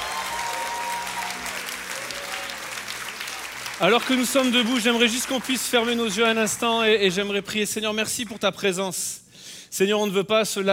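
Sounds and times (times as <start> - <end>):
church congregation standing ovation: 0.0 - 7.3
speech: 3.8 - 10.7.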